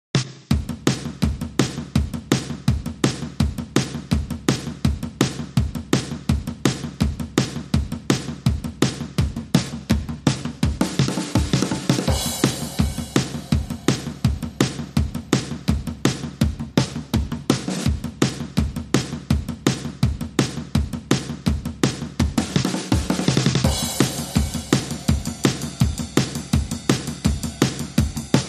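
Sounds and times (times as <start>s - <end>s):
drums: 0.0s - 28.4s.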